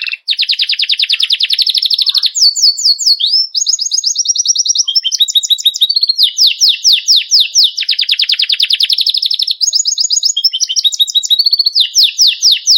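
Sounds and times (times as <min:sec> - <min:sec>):
white Belgian canary singing: 0:00.0 - 0:12.7.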